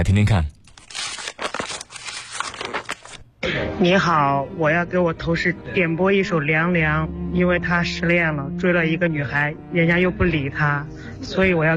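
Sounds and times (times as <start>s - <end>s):
speech: 0.0s - 0.5s, 3.5s - 11.7s
listener's letter envelope being torn open: 0.6s - 3.2s.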